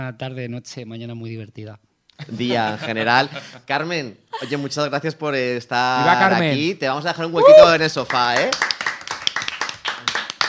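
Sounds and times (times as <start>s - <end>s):
speech: 0.0s - 8.7s
laughter: 2.2s - 3.7s, 4.4s - 4.7s
clapping: 8.1s - 10.4s.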